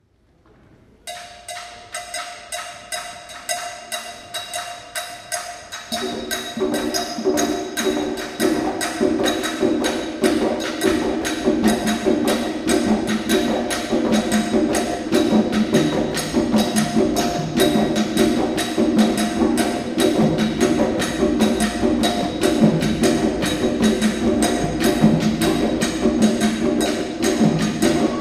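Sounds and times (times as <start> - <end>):
ensemble playing bembe rhythm: 1.0 - 28.2.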